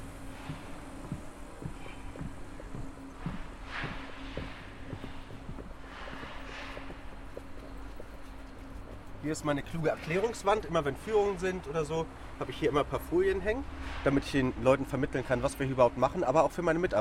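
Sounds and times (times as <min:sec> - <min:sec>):
constant low hum: 0:00.0 - 0:09.2
footsteps walking down at a dig site: 0:00.0 - 0:09.3
speech: 0:09.3 - 0:16.9.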